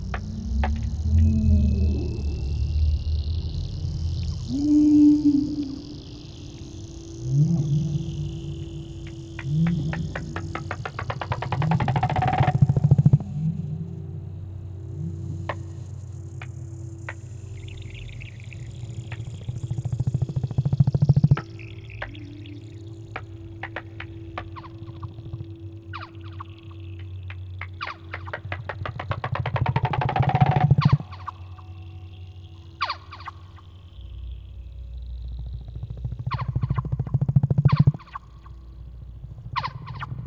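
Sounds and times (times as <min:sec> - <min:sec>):
soundscape in Trondheim: 0:00.0 - 0:40.2.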